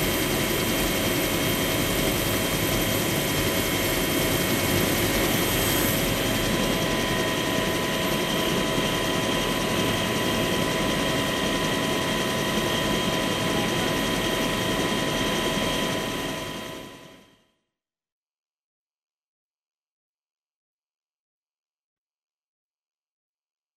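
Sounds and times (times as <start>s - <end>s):
helicopter: 0.0s - 17.5s.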